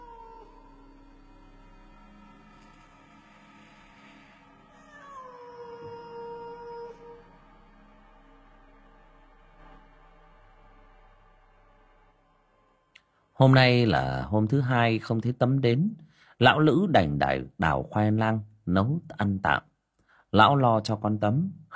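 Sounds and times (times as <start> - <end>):
cat yowling mournfully in a wild field at night: 0.0 - 1.2, 4.1 - 7.4
speech: 13.4 - 19.7, 20.3 - 21.7.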